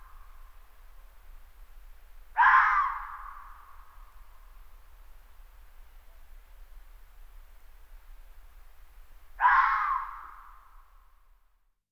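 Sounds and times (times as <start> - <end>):
red fox scream-like call: 2.4 - 3.5, 9.4 - 10.5.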